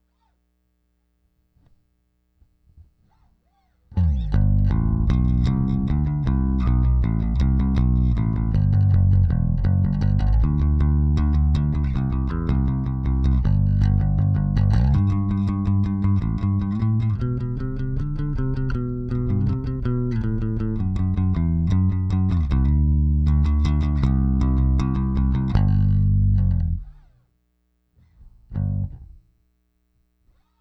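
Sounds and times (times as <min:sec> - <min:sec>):
bass: 0:03.9 - 0:27.3, 0:28.0 - 0:30.5.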